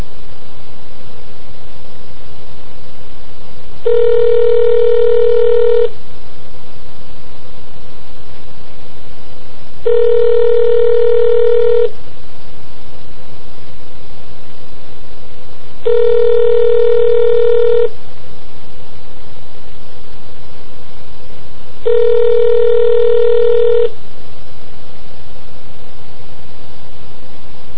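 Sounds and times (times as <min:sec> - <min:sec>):
telephone call connecting tones: 0:03.8 - 0:05.9, 0:09.8 - 0:11.9, 0:15.9 - 0:17.9, 0:21.9 - 0:23.9.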